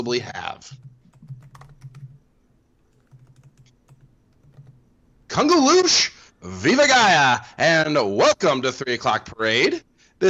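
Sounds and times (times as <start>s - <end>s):
speech: 0.0s - 0.9s, 5.4s - 10.2s
typing on a computer keyboard: 0.7s - 2.2s, 2.9s - 4.8s.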